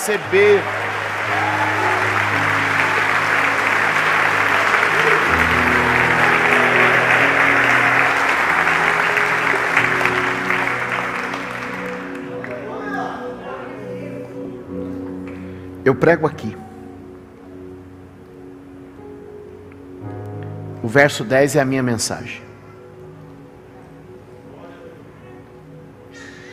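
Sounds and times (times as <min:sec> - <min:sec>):
speech: 0:00.0 - 0:01.8, 0:15.9 - 0:16.6, 0:20.9 - 0:22.5
audience applause: 0:00.0 - 0:13.1
low sustained musical drone: 0:00.0 - 0:26.5.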